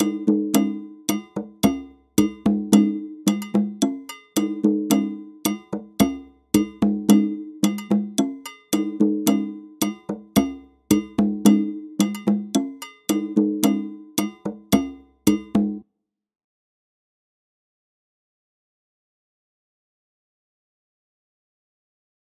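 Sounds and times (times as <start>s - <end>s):
music: 0.0s - 15.8s.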